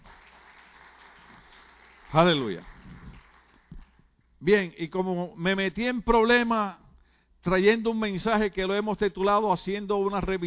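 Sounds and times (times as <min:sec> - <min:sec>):
audience applause: 0:00.0 - 0:04.0
speech: 0:02.1 - 0:02.7, 0:04.4 - 0:06.8, 0:07.4 - 0:10.4.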